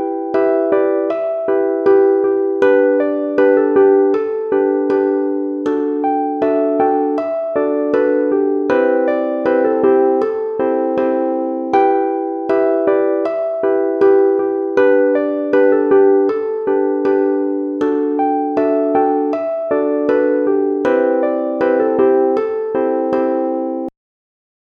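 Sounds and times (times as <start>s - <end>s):
melody chords at 80 bpm: 0.0s - 23.9s.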